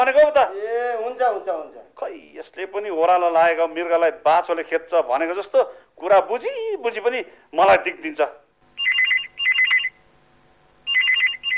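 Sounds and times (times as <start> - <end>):
speech: 0.0 - 8.4
telephone ringing with an electronic trilling tone: 8.7 - 11.5.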